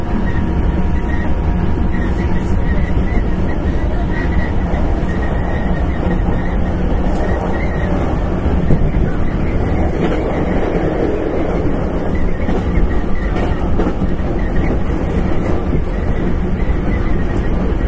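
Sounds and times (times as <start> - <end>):
express train on the Kyoto Line running: 0.0 - 17.8
rail joint clicks: 0.0 - 17.8.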